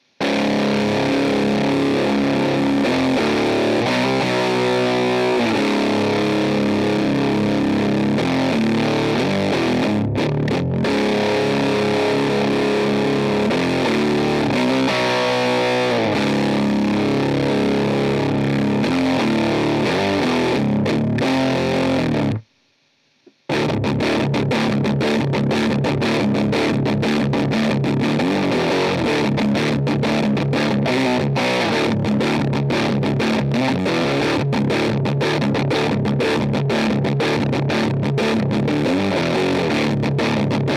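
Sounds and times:
Laney 2x12 cabinet with Celestion G12M25 speakers: 0:00.0 - 0:22.6, 0:23.2 - 0:40.7.

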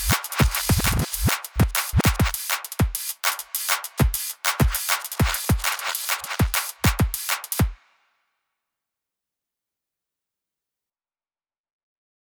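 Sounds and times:
drum loop: 0:00.0 - 0:07.8.

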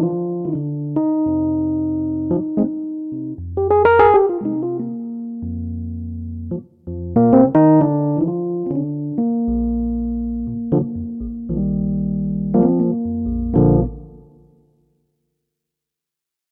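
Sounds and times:
Clavia Nord Grand EP8 electric piano: 0:00.0 - 0:14.6.

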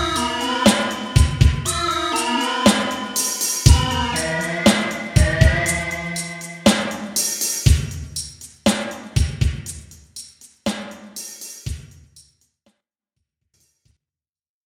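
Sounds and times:
synths through Roland SRV-2000: 0:00.0 - 0:07.2
drums through Roland SRV-2000: 0:00.0 - 0:12.4.

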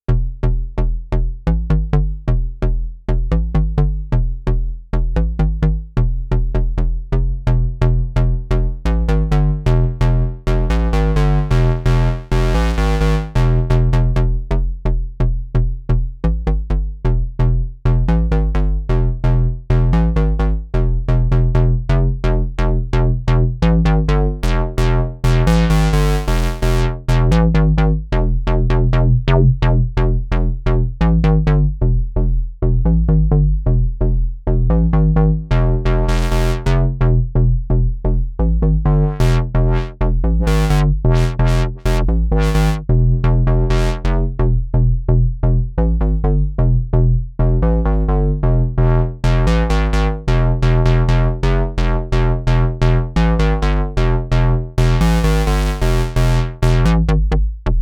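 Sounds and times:
square wave bass: 0:00.0 - 0:57.8.

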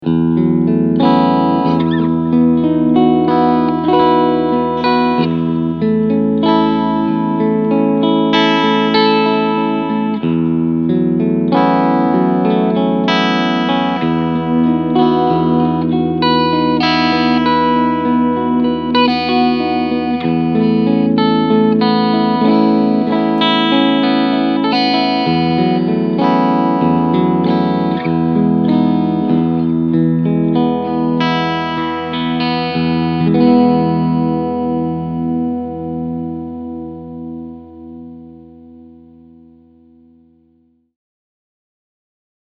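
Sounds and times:
Chapman Guitars ML3 Pro Modern semi-hollow guitar clean tone front humbucker: 0:00.0 - 0:40.9.

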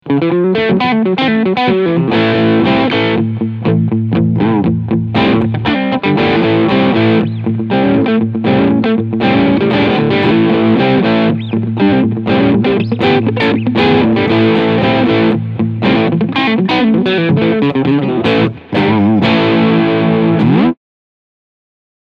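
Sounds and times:
crunchy electric guitar with both pickups: 0:00.0 - 0:20.8.

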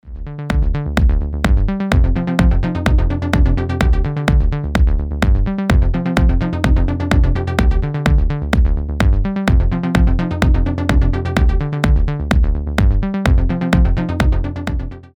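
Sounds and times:
Waldorf synthesizer rocket arpeggio: 0:00.1 - 0:15.1.

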